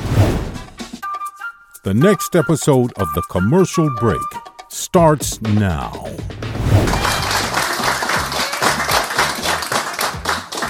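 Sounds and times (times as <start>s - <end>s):
speech: 1.8s - 7.0s
clapping: 6.9s - 10.6s.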